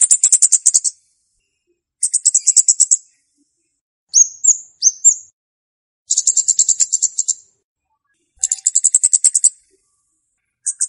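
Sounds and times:
flowerpecker lure song of high fast ticking trills: 0.0 - 1.0, 2.0 - 3.1, 4.1 - 5.4, 6.0 - 7.5, 8.4 - 9.9, 10.6 - 10.8.

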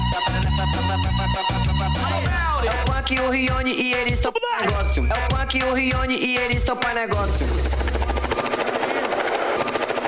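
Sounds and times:
speech: 0.8 - 8.5
helicopter sound effect: 7.3 - 10.0.

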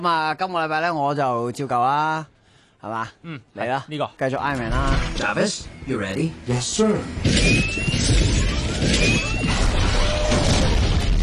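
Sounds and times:
speech: 0.0 - 9.3
explosion sound effect: 8.1 - 11.2.

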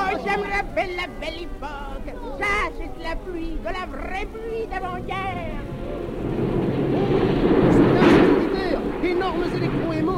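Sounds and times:
speech: 0.2 - 7.6, 9.0 - 10.1
artificial thunder from shaken metal sheets: 4.5 - 10.1.

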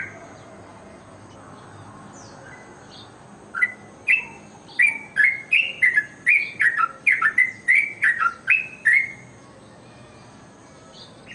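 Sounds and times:
bird ringing chirps: 3.6 - 9.2.

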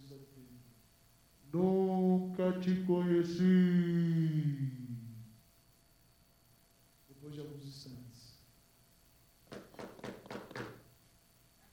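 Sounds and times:
speech: 1.4 - 1.8, 2.4 - 5.0
knocking on a door: 9.5 - 10.8.

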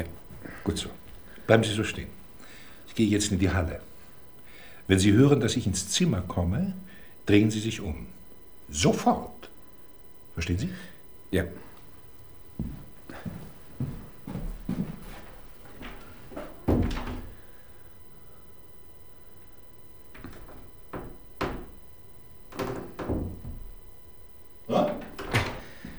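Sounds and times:
speech: 0.0 - 2.2, 2.9 - 3.9, 4.9 - 9.4, 10.4 - 11.6
door creaking open: 15.8 - 17.5, 20.1 - 21.9, 22.5 - 23.9, 24.7 - 25.9.

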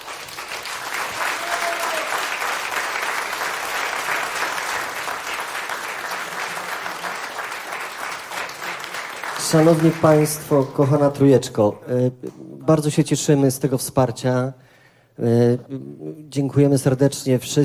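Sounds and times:
audience applause at a charity auction event: 0.0 - 11.1
speech: 9.5 - 17.6.

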